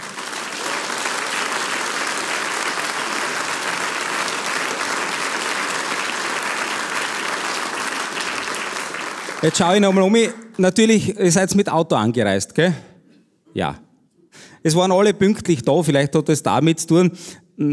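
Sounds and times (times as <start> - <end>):
audience applause: 0.0 - 10.6
speech: 9.4 - 12.9, 13.5 - 13.8, 14.6 - 17.7.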